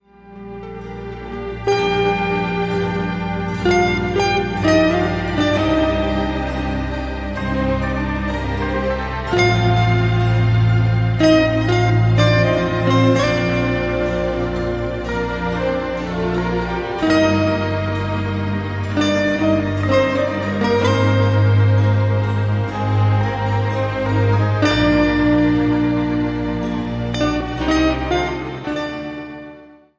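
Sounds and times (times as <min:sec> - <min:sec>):
slow classical piece in G minor: 0:00.0 - 0:29.9.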